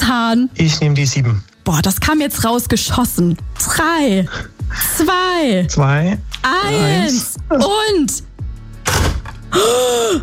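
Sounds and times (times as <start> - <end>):
speech: 0.2 - 8.3, 9.5 - 10.2
toy crocodile's plastic jaws snapping shut: 8.8 - 9.4.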